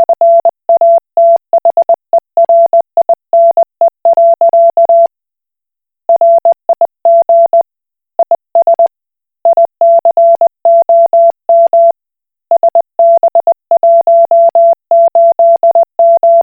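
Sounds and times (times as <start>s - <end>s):
Koch Morse code beeps: 0.0s - 5.1s, 6.1s - 7.6s, 9.5s - 11.9s, 12.5s - 16.4s.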